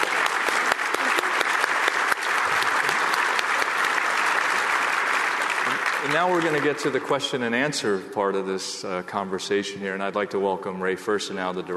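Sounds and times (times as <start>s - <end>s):
audience round of applause: 0.0s - 7.4s
speech: 6.0s - 11.7s.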